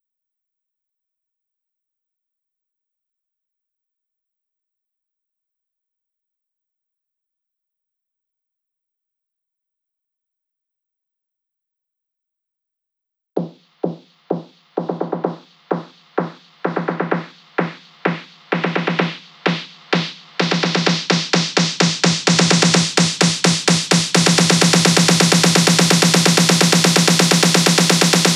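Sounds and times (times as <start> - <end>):
drum loop: 13.4 - 28.3
snare uplifter: 14.4 - 28.3.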